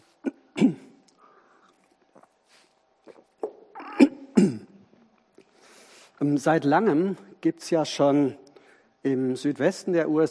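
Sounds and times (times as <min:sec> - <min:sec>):
speaker gulping a quick drink: 0:01.1 - 0:04.1
speech: 0:06.2 - 0:08.4, 0:09.0 - 0:10.2.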